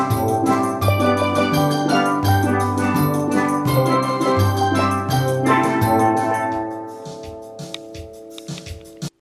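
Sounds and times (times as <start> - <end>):
orchestral strings tutti ponticello: 0.0 - 6.8.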